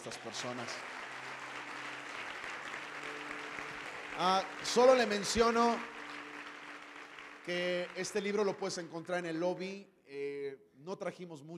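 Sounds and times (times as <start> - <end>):
speech: 0.0 - 1.0, 4.2 - 5.9, 7.4 - 11.5
audience applause: 0.0 - 8.8.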